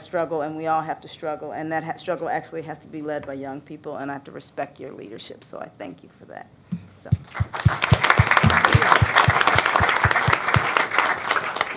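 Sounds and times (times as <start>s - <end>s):
speech: 0.1s - 8.1s
audience applause for panelists: 7.3s - 11.7s.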